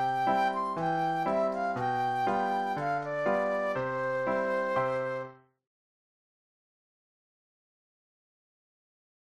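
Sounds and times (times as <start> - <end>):
flute solo: 0.0 - 5.4.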